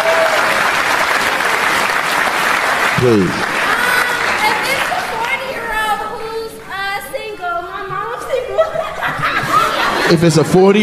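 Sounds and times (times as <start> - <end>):
audience applause: 0.0 - 5.8
speech: 3.0 - 3.5, 10.1 - 10.8
laughter: 8.0 - 10.8.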